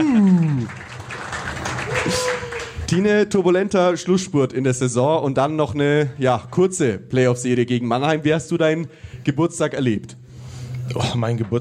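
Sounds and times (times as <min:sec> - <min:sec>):
applause for a birthday congratulation: 0:00.0 - 0:03.1
speech: 0:02.9 - 0:10.2, 0:10.9 - 0:11.5.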